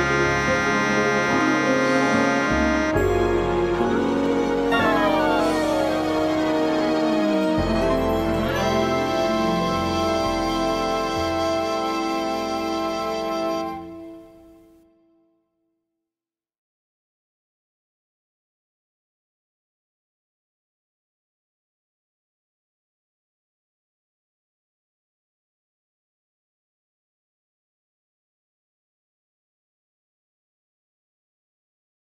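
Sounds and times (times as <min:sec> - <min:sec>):
moody big band music: 0:00.0 - 0:14.1.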